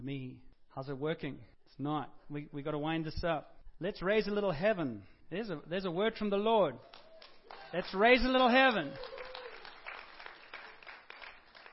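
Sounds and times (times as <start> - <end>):
speech: 0.0 - 9.2
audience clapping: 6.8 - 11.7.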